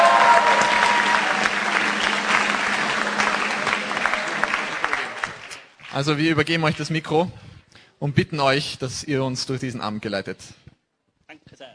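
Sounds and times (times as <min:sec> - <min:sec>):
audience applause: 0:00.0 - 0:06.4
speech: 0:06.0 - 0:07.4, 0:08.0 - 0:10.6.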